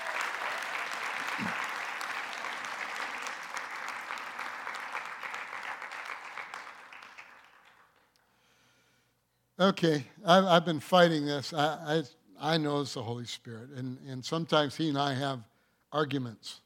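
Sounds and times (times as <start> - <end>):
audience applause: 0.0 - 8.1
speech: 9.6 - 16.6.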